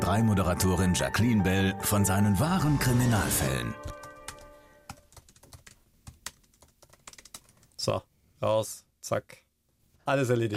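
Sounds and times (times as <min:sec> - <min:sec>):
speech: 0:00.1 - 0:04.0, 0:07.9 - 0:09.4, 0:10.1 - 0:10.5
typing on a computer keyboard writing emails: 0:03.8 - 0:07.8.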